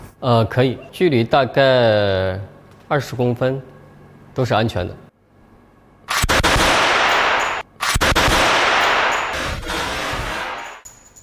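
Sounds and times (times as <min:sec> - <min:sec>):
speech: 0:00.2 - 0:03.7, 0:04.4 - 0:05.0
gas-ignition prop gun firing: 0:06.1 - 0:10.8.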